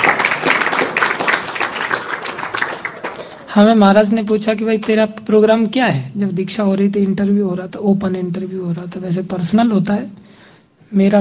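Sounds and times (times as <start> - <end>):
audience clapping: 0.0 - 5.0
speech: 3.6 - 11.2.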